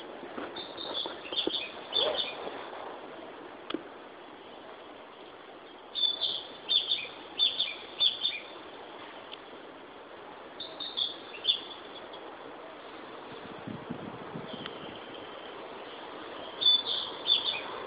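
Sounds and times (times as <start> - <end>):
Ficedula narcissina singing: 0.6 - 2.4, 5.6 - 8.6, 10.6 - 12.2, 15.8 - 17.8.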